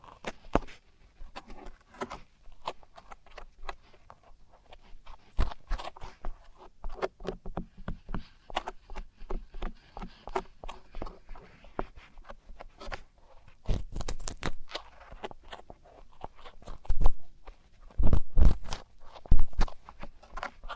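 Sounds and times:
traditional Chinese ear cleaning scratching: 0:00.0 - 0:20.7.

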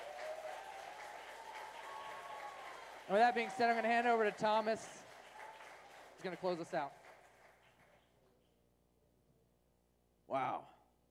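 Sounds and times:
audience applause: 0:00.0 - 0:08.0
speech: 0:03.1 - 0:05.0, 0:06.2 - 0:07.0, 0:10.3 - 0:10.7.

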